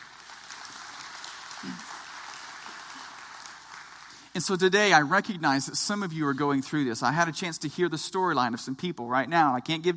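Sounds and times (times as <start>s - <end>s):
audience clapping: 0.0s - 5.7s
speech: 1.6s - 1.9s, 4.4s - 9.9s.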